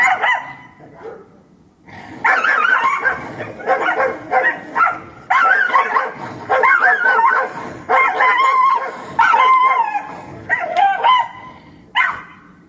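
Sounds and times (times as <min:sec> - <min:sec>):
fighting dogs barking: 0:00.0 - 0:01.3, 0:02.2 - 0:11.4, 0:12.0 - 0:12.5.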